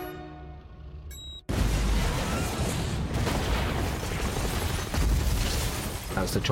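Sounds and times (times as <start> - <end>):
huge explosion of the Skynet facility blowing up in flames in a film: 1.5 - 6.5.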